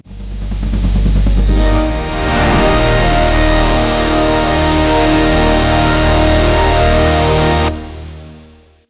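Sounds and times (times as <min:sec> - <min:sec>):
thriller music: 0:00.3 - 0:08.7.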